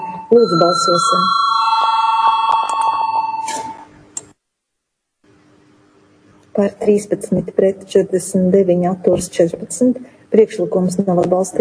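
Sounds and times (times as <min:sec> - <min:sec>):
parliamentary voting bell ringing: 0:00.0 - 0:03.8
speech: 0:00.3 - 0:01.4, 0:06.6 - 0:11.5.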